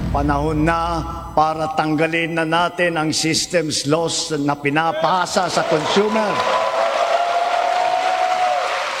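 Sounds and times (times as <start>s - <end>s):
speech: 0.2s - 6.7s
large standing audience clapping for President Ferdinand Marcos Jr.'s statement: 5.4s - 8.9s.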